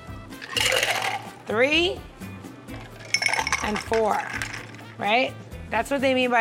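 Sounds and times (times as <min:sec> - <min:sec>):
cocktail liquid poured from a shaker tin into a glass: 0:00.4 - 0:01.4, 0:02.7 - 0:04.8
speech: 0:01.5 - 0:02.2, 0:03.7 - 0:06.3.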